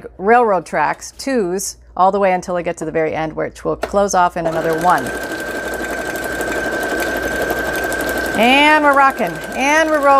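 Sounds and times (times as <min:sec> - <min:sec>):
speech: 0:00.2 - 0:05.4, 0:08.4 - 0:10.1
sewing machine stitching: 0:04.4 - 0:10.1.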